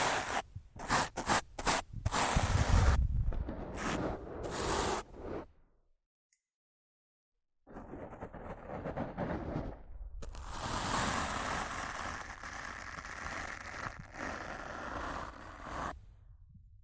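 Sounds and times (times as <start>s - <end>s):
scratching and brushing on a microphone: 0.0s - 5.0s, 7.7s - 16.0s.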